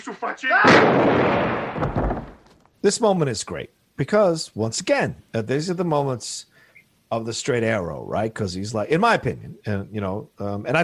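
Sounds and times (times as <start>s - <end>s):
speech: 0.0s - 1.8s, 2.8s - 6.5s, 7.1s - 10.8s
gunshot in film scene: 0.6s - 2.4s.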